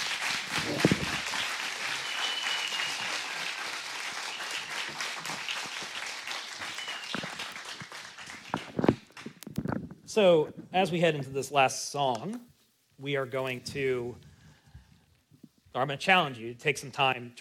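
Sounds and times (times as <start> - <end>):
crowd applauding: 0.0 - 9.4
speech: 10.2 - 14.2, 15.8 - 17.3.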